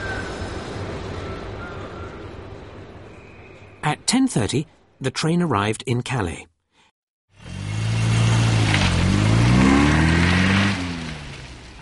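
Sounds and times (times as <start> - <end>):
speech: 4.1 - 6.5
car engine revving as it drives off: 7.3 - 11.8.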